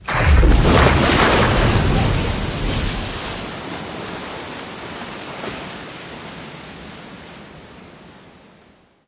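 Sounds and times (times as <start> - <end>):
crash of an airplane emergency landing in water: 0.0 - 5.8.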